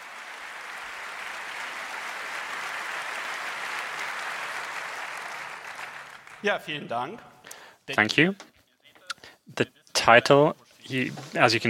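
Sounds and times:
crowd applause: 0.0 - 6.7
speech: 6.4 - 7.3, 7.9 - 8.5, 9.5 - 11.6.

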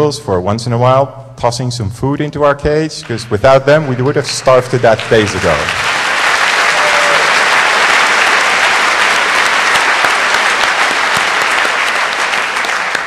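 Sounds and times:
speech: 0.0 - 6.0
audience applause: 3.0 - 13.0.

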